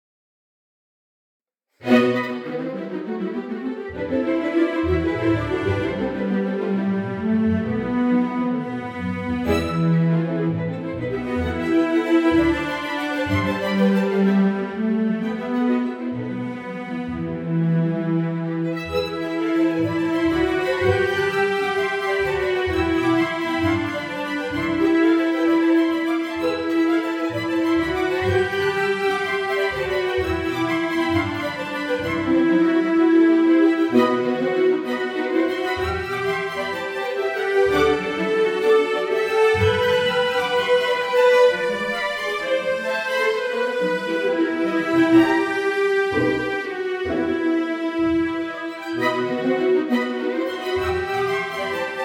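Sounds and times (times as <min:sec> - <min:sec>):
strings: 0:01.8 - 0:52.0.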